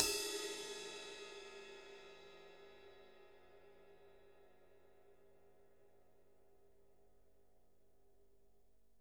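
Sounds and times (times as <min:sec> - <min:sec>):
ride cymbal: 0:00.0 - 0:03.0.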